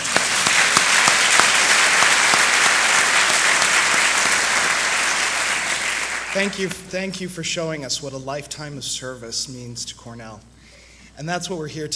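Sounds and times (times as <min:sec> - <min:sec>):
audience applause: 0:00.0 - 0:06.7
speech: 0:06.4 - 0:10.6, 0:11.2 - 0:11.9.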